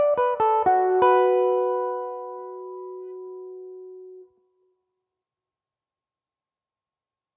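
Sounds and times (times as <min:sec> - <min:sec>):
Irish mandolin tune in B minor: 0:00.1 - 0:04.2.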